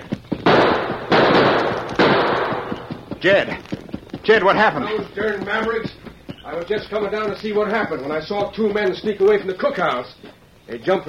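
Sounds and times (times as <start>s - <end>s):
gunshots: 0.4s - 3.4s
speech: 3.2s - 11.0s.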